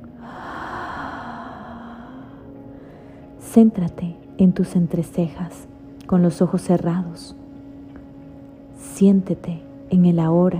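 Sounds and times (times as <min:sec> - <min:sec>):
low sustained tone: 0:00.0 - 0:10.5
deep exhale during a guided meditation breathing exercise: 0:00.1 - 0:03.2
speech: 0:03.5 - 0:07.4, 0:09.0 - 0:10.5.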